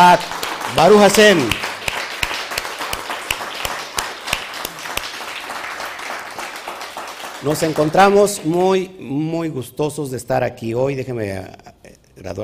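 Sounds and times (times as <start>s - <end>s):
crowd applauding: 0.0s - 8.9s
speech: 0.1s - 1.6s, 7.4s - 12.4s.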